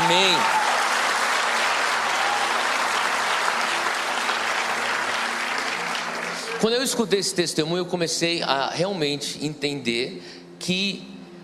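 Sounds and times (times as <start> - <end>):
audience applauding: 0.0 - 6.9
speech: 6.6 - 11.1.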